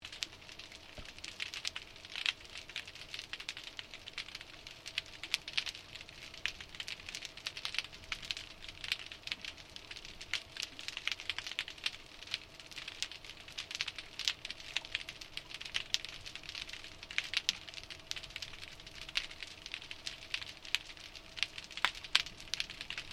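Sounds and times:
krill clicking underwater in the ocean: 0:00.0 - 0:23.1.

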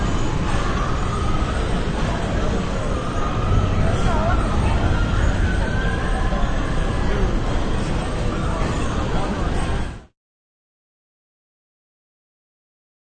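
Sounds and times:
crowds at amusement parks: 0:00.0 - 0:10.1.

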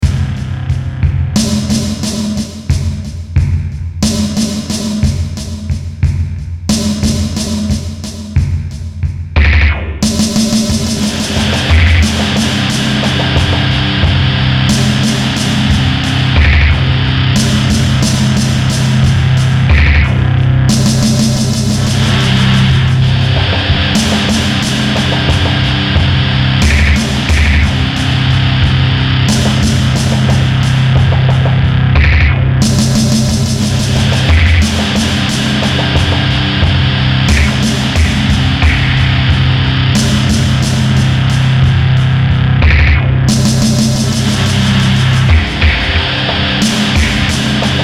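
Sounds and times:
slow intense rock beat: 0:00.0 - 0:47.8.

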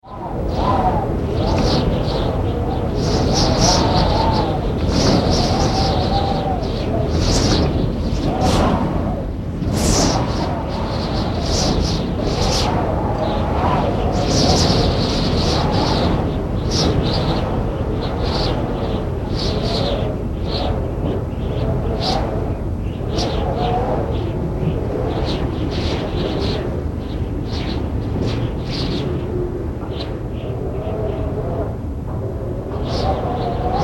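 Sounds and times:
wind with whistling gusts: 0:00.0 - 0:33.8.

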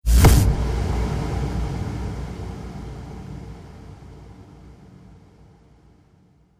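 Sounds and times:
trailer hit: 0:00.0 - 0:05.1.

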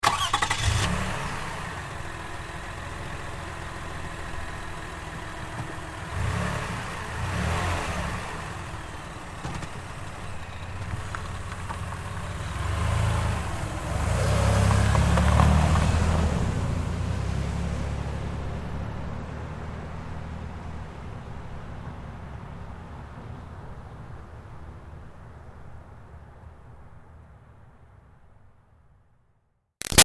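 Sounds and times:
Highlander car starting and driving away slowly: 0:00.0 - 0:23.6.

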